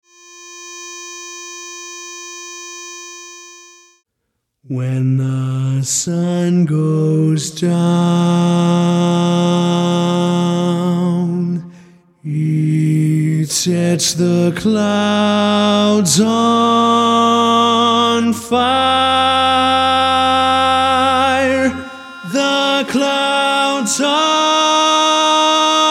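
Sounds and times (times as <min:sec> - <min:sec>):
baritone barbershop tags: 0:04.7 - 0:11.6, 0:12.2 - 0:25.8.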